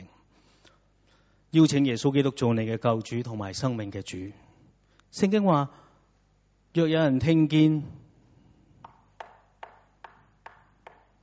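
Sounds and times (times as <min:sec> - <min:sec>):
speech: 0:01.5 - 0:04.5, 0:05.1 - 0:05.8, 0:06.8 - 0:08.0
knocking on a door: 0:08.8 - 0:11.2.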